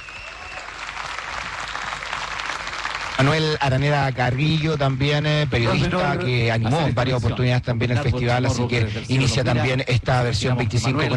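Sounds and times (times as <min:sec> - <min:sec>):
applause from a large audience: 0:00.0 - 0:06.0
speech: 0:03.2 - 0:11.1.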